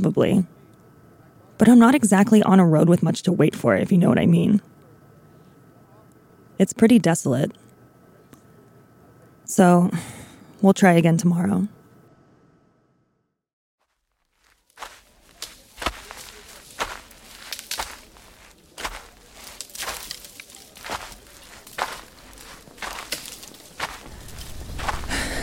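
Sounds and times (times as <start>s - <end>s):
speech: 0.0s - 0.6s, 1.6s - 4.7s, 6.6s - 7.6s, 9.5s - 11.8s
crunchy footsteps of a person hiking on Cheyenne Mountain: 13.8s - 25.4s.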